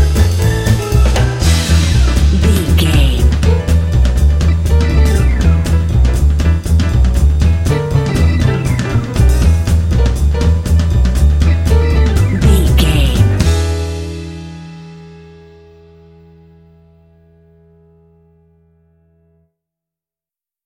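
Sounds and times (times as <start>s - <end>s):
swing music bed: 0.0s - 15.6s.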